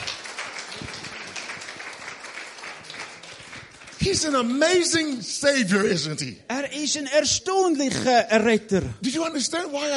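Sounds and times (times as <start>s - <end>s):
congregation clapping during a church service: 0.0s - 5.2s
speech: 4.0s - 9.9s.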